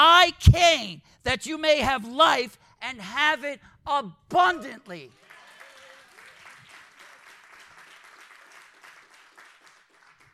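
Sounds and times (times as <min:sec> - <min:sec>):
speech: 0:00.3 - 0:05.3
audience clapping: 0:05.1 - 0:10.3.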